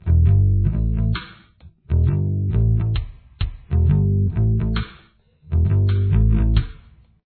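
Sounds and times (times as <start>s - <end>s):
bass: 0.0s - 7.0s.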